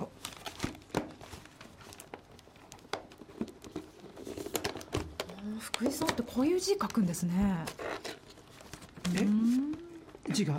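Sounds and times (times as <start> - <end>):
wrapper of a nut tartlet sweet crinkling: 0.0 - 10.5
speech: 5.7 - 8.0, 9.1 - 9.4, 10.4 - 10.5.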